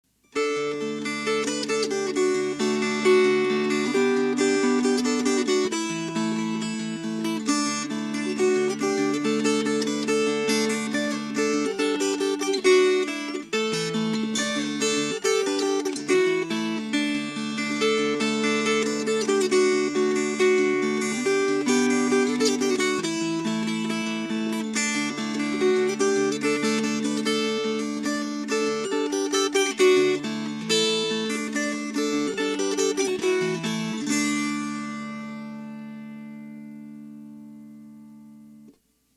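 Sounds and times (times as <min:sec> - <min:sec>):
fingerpicked strings: 0:00.2 - 0:38.9.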